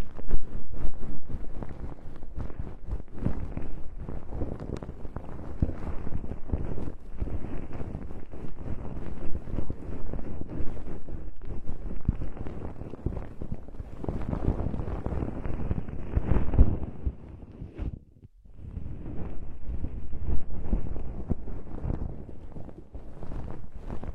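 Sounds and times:
fluffy earwax removal muffled rustling and brushing: 0.0s - 24.1s
tiny crackles: 0.0s - 24.1s.

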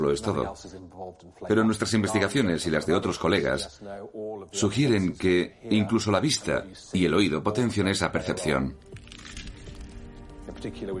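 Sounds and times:
speech: 0.0s - 9.0s, 10.6s - 10.9s
crunch of potato chips: 9.0s - 10.1s.

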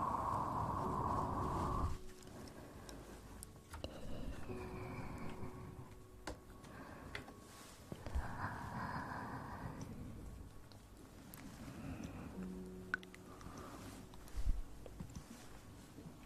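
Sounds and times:
ear blowing: 0.0s - 10.5s, 11.2s - 16.2s
mouth sounds clicks: 12.8s - 13.6s.

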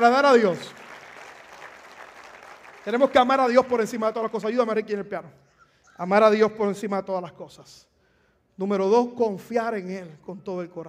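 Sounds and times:
speech: 0.0s - 0.8s, 2.8s - 5.4s, 6.0s - 7.9s, 8.6s - 10.8s
loud audience applause: 0.0s - 3.6s.

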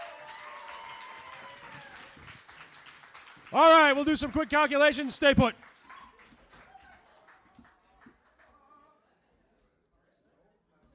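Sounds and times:
audience applause: 0.0s - 8.6s
speech: 3.5s - 5.7s.

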